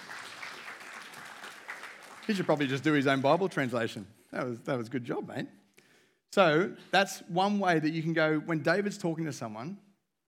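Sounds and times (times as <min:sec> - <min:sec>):
room full of people clapping: 0:00.0 - 0:03.8
speech: 0:02.3 - 0:05.6, 0:06.3 - 0:09.9.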